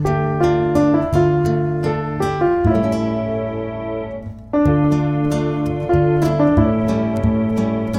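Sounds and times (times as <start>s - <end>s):
instrumental music: 0.0s - 7.9s.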